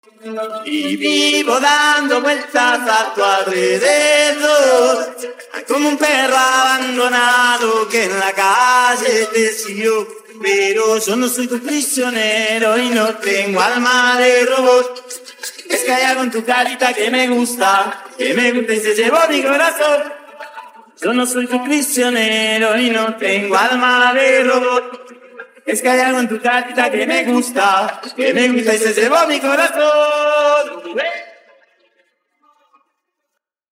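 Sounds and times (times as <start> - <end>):
a cappella singing: 0.0 - 31.6
laughter: 0.7 - 11.8, 12.7 - 21.2, 23.7 - 31.8.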